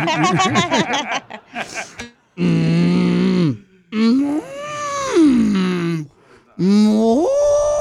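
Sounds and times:
chattering laugh-like vocal sounds: 0.0 - 2.2
person imitating cow mooing: 2.4 - 7.7.

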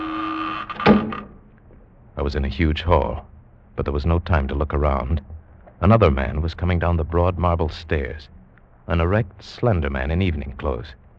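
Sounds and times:
door shutting: 0.0 - 1.5
steady low mechanical hum: 0.0 - 11.1
speech: 2.2 - 11.0.

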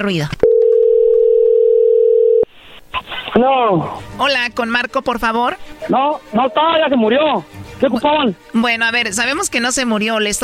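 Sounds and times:
speech: 0.0 - 0.4, 3.3 - 10.4
telephone dial tone: 0.4 - 2.5.

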